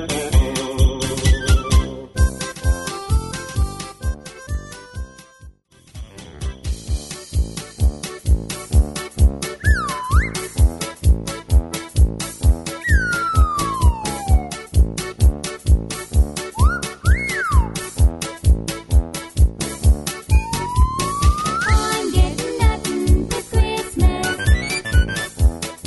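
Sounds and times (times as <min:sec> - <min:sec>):
square dance music: 0:00.0 - 0:05.4, 0:06.0 - 0:25.8
background vocals: 0:21.8 - 0:24.3.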